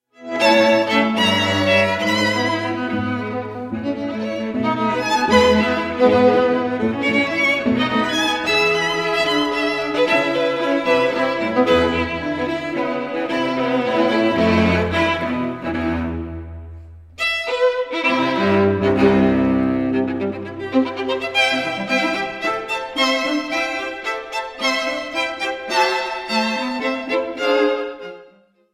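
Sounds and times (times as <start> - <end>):
string quartet playing: 0.2 - 28.6.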